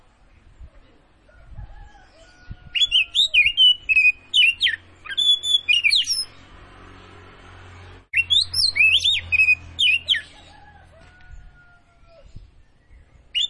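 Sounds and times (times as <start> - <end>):
Oriental magpie-robin of the Tretes form singing vigorously with whistled phrases: 2.7 - 6.3, 8.1 - 10.4.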